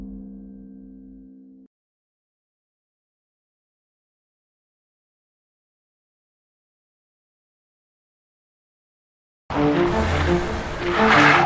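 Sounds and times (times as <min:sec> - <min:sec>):
car tires skidding under hard braking: 0:09.5 - 0:11.4
low car engine hum: 0:09.5 - 0:11.4.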